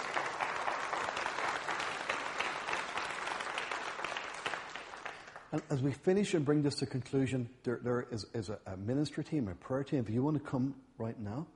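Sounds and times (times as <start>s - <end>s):
audience applause: 0.0s - 5.7s
speech: 5.5s - 11.5s.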